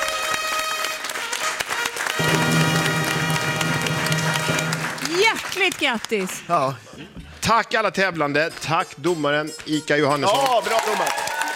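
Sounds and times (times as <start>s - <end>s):
studio audience applause: 0.0s - 6.8s, 10.3s - 11.5s
speech: 5.6s - 11.3s.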